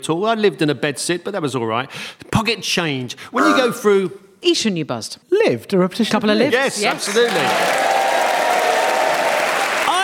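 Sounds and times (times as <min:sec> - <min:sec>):
speech: 0:00.0 - 0:07.9
studio audience cheering and applauding at a game show: 0:06.9 - 0:10.0.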